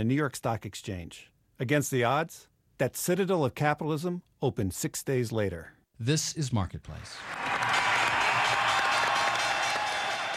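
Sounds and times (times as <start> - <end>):
speech: 0.0 - 7.4
cheering on the New York Stock Exchange trading floor: 7.0 - 10.3.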